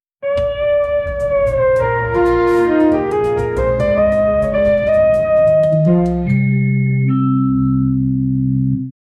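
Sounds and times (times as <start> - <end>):
upright bass: 0.2 - 8.9
light background music: 0.4 - 7.3.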